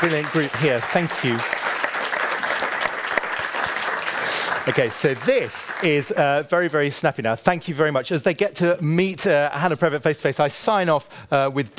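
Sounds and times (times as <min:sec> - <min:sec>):
speech: 0:00.0 - 0:01.6, 0:04.7 - 0:11.7
audience applauding after panel session: 0:00.0 - 0:06.4.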